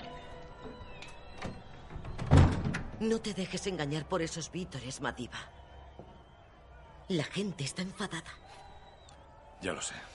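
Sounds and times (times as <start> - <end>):
door swinging shut: 1.1 - 3.0
speech: 3.0 - 5.6, 7.1 - 8.6, 9.6 - 10.1.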